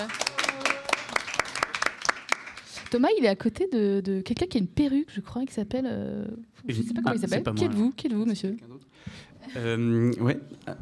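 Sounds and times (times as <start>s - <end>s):
small audience giving light scattered applause: 0.0s - 2.9s
speech: 2.9s - 10.8s.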